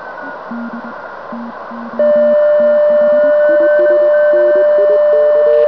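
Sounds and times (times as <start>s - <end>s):
zero beat tone: 0.5s - 5.6s.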